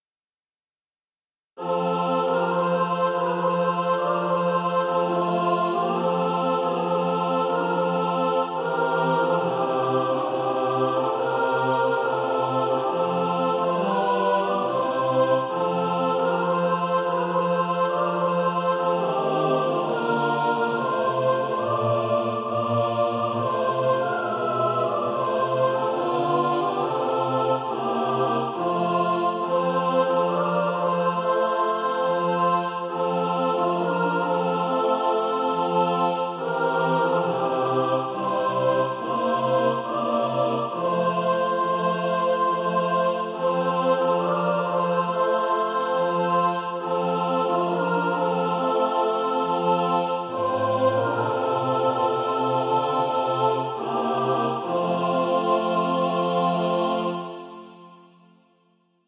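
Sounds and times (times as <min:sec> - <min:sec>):
mixed SATB choir practice music: 0:01.6 - 0:58.3.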